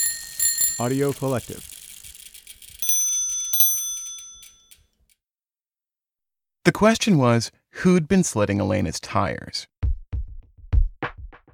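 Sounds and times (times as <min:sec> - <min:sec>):
bicycle bell ringing: 0:00.0 - 0:05.0
speech: 0:00.8 - 0:01.7, 0:06.6 - 0:09.7.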